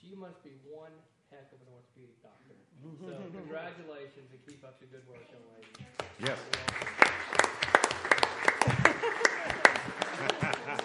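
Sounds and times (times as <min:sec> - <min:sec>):
speech: 0:00.2 - 0:07.7
laughter: 0:02.8 - 0:03.6, 0:08.5 - 0:10.8
person clapping: 0:05.6 - 0:10.8.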